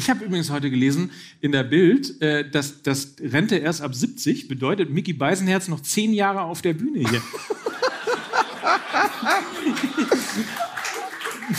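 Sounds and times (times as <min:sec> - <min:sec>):
speech: 0:00.0 - 0:07.9, 0:08.6 - 0:10.7
laughter: 0:07.0 - 0:11.5
audience clapping: 0:07.2 - 0:11.5.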